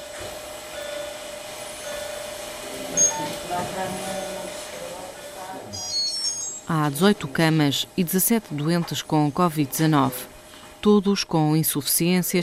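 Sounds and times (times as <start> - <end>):
steady electronic hum in intensive care unit: 0.0 - 12.4
thin tonal beeps from intensive care unit machines: 0.8 - 7.1
speech: 3.5 - 4.4, 6.7 - 12.4.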